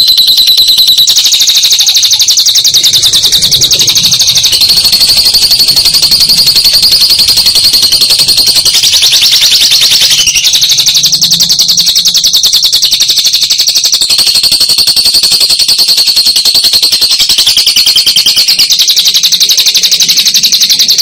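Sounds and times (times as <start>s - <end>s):
lovebird chattering: 0.0s - 20.9s.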